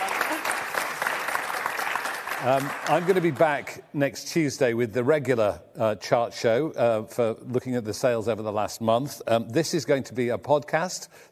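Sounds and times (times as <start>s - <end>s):
crowd clapping: 0.0s - 3.8s
speech: 2.4s - 11.2s.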